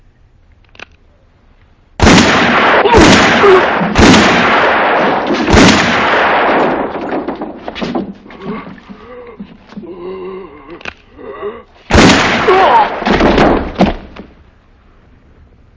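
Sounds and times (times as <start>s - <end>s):
gunshots in a film scene: 2.0s - 7.6s, 11.9s - 14.1s.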